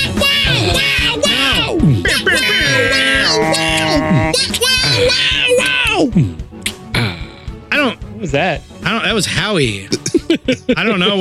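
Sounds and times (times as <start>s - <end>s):
several voices imitating an air horn: 0.0s - 5.9s
laughter: 2.0s - 5.6s, 9.9s - 11.1s
speech: 8.3s - 11.1s.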